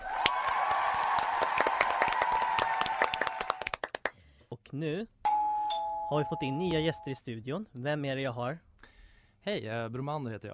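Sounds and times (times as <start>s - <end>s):
applause: 0.0s - 4.2s
speech: 4.7s - 5.2s, 6.1s - 8.7s, 9.4s - 10.5s.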